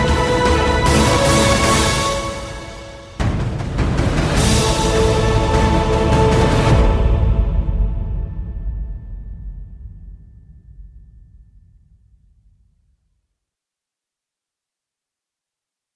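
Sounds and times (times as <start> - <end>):
corporate promotional video background music: 0.0 - 9.9.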